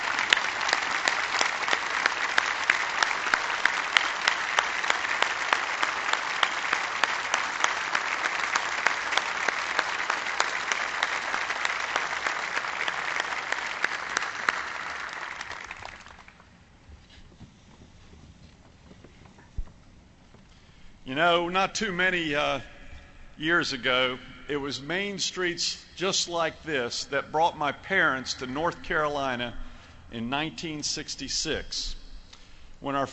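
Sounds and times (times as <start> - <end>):
audience applause: 0.0 - 16.4
speech: 21.2 - 22.7, 23.4 - 32.0, 32.8 - 33.1.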